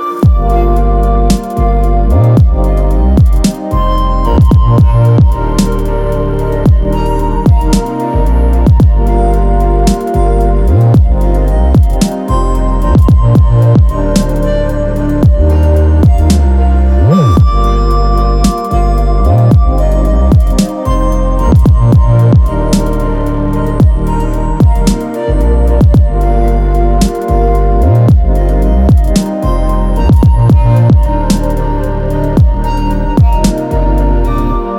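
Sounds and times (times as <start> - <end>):
1 kHz sine wave tone: 0.0 - 34.7.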